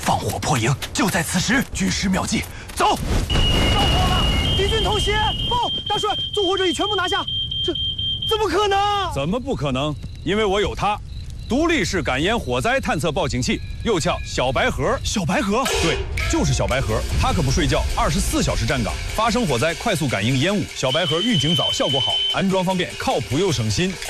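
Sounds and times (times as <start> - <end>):
speech: 0.2 - 3.9, 4.6 - 24.0
standalone smoke-sensing fire detector alarm tone: 3.3 - 17.7, 18.5 - 24.0.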